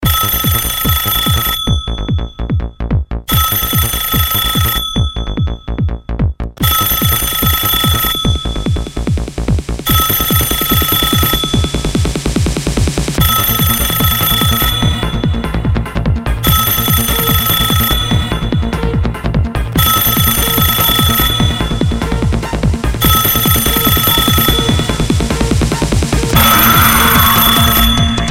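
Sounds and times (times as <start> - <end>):
techno phone ringtone: 0.0 - 28.2.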